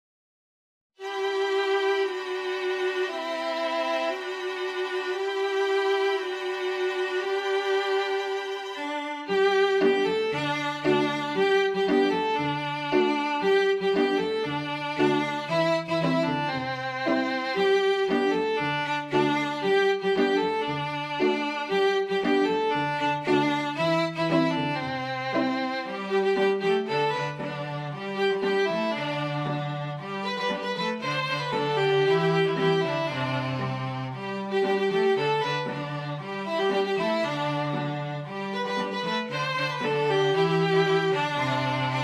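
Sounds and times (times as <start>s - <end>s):
string quintet playing: 1.0s - 42.0s.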